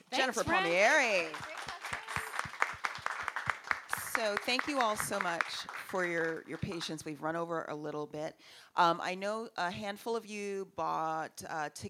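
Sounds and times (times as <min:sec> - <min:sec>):
speech: 0:00.2 - 0:01.6, 0:04.2 - 0:11.8
crowd applauding: 0:00.4 - 0:07.0.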